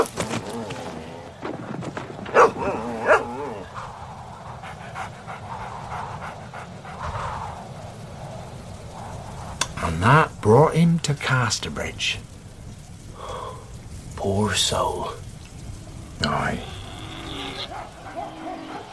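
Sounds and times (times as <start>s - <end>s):
dogs barking and yelping: 2.2s - 7.7s, 15.9s - 18.9s
low constant rumble: 2.3s - 18.3s
dog panting: 2.4s - 7.7s, 17.7s - 18.9s
speech: 10.1s - 12.3s, 14.3s - 15.2s.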